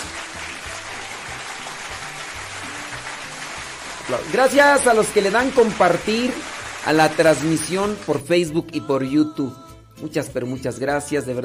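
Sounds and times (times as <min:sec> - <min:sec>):
dense applause: 0:00.0 - 0:08.2
speech: 0:04.1 - 0:11.4.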